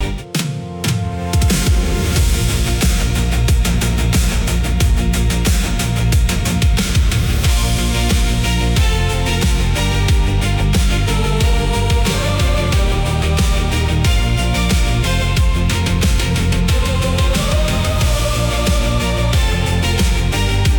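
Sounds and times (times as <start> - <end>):
music loop: 0.0 - 20.7.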